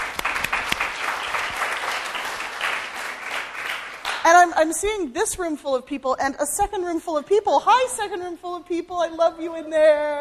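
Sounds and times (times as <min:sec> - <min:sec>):
audience applause: 0:00.0 - 0:04.2
speech: 0:04.2 - 0:10.1.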